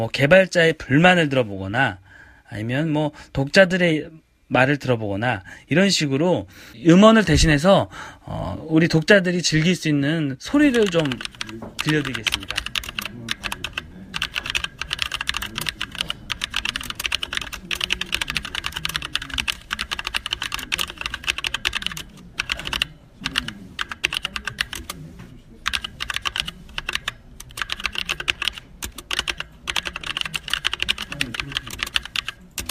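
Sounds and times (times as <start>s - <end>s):
speech: 0.0s - 12.7s
typing on a mechanical keyboard: 10.6s - 25.0s, 25.6s - 32.6s.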